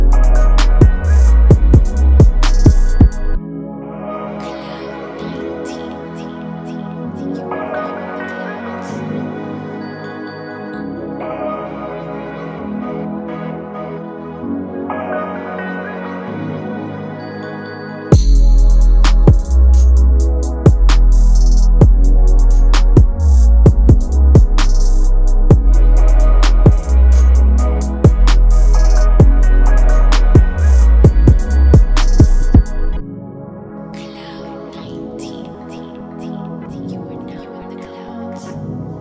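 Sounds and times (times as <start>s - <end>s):
RnB beat in G minor at 130 BPM: 0.0s - 3.4s, 18.1s - 33.0s.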